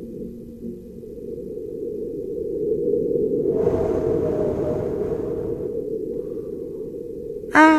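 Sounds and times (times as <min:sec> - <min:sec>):
recorded wind on Mars: 0:01.5 - 0:07.6.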